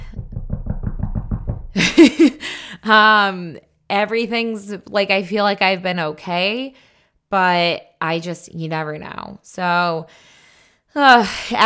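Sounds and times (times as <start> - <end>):
knuckles knocking on wood: 0.0 - 1.8
speech: 1.8 - 10.3, 10.9 - 11.6.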